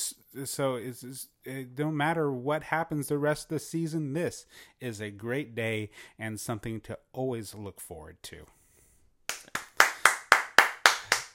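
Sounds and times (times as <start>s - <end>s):
speech: 0.4s - 8.6s
hands clapping: 9.3s - 11.3s.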